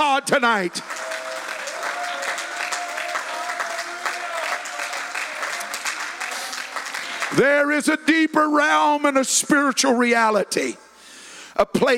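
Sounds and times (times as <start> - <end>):
speech: 0.0 - 1.2, 7.3 - 10.9, 11.6 - 11.9
audience clapping: 0.0 - 8.0.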